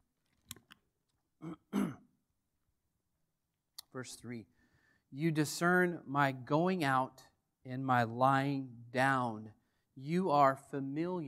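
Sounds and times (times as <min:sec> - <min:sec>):
person choking and clearing throat: 0:01.4 - 0:02.2
speech: 0:04.0 - 0:11.2.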